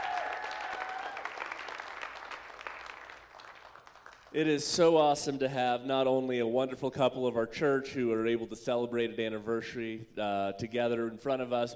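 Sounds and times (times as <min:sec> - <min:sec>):
audience applause: 0:00.0 - 0:04.3
speech: 0:04.3 - 0:11.7.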